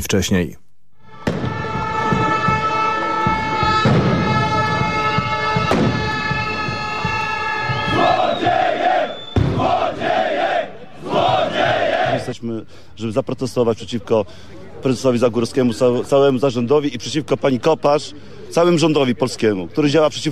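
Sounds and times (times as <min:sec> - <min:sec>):
speech: 0:00.0 - 0:00.6, 0:12.3 - 0:20.2
horns blaring: 0:01.0 - 0:12.1
sharp bangs: 0:01.1 - 0:07.2, 0:09.3 - 0:10.1
protesting miners shouting and chanting: 0:01.1 - 0:12.4.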